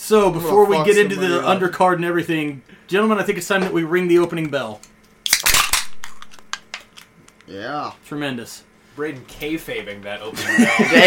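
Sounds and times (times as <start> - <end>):
speech: 0.1 - 4.9, 7.5 - 11.0
can being crumpled: 5.2 - 7.1
laughter: 10.3 - 11.0.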